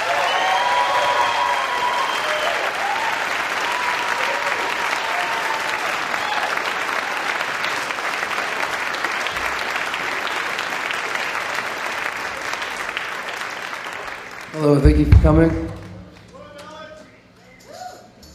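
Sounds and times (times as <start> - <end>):
audience applause welcoming a band on stage at a live music event: 0.0 - 16.5
audience whistles: 0.2 - 2.6
speech: 14.7 - 15.7.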